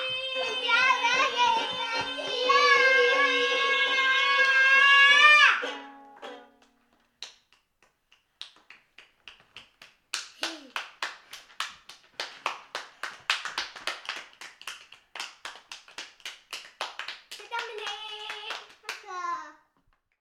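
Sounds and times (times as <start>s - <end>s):
people singing: 0.0s - 5.6s.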